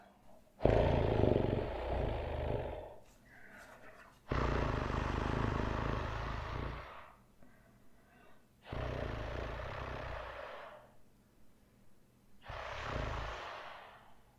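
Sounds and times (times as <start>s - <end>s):
person imitating cat purr: 0.6s - 3.0s, 4.3s - 7.1s, 8.6s - 10.8s, 12.4s - 14.0s.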